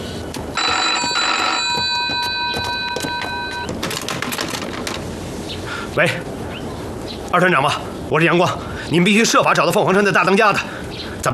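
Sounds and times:
telephone ringing unanswered: 0.5s - 4.3s
speech: 6.0s - 6.3s, 7.3s - 11.3s.

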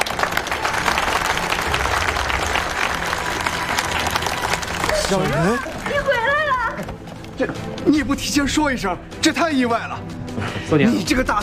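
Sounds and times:
audience applause: 0.0s - 7.4s
speech: 5.1s - 6.8s, 7.4s - 11.4s.

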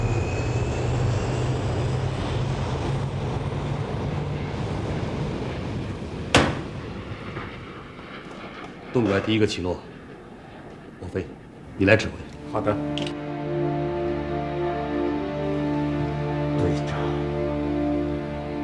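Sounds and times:
airplane engine roaring during takeoff: 0.0s - 18.6s
sharp click: 12.9s - 13.2s.

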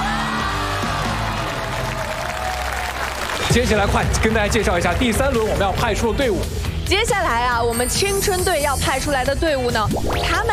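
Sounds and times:
crowd whooping and shouting: 0.0s - 3.4s
crowd applauding: 0.0s - 6.0s
speech: 3.6s - 10.5s.

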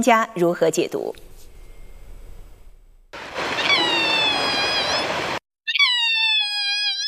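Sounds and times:
speech: 0.0s - 1.4s
newborn Père David's deer fawn calling: 3.5s - 5.1s, 5.7s - 7.0s.

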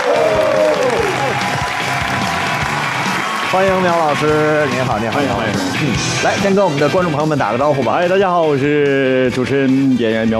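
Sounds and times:
audience applause welcoming a guest: 0.0s - 5.5s
speech: 3.5s - 10.3s.

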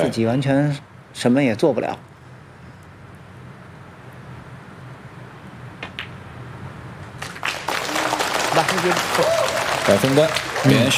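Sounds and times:
speech: 0.0s - 2.1s, 8.8s - 9.3s, 9.9s - 10.9s
audience clapping: 7.2s - 10.9s.

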